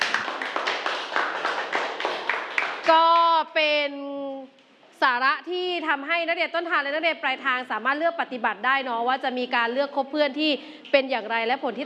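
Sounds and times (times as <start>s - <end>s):
classroom applause for a student group: 0.0s - 3.0s
speech: 2.9s - 11.8s.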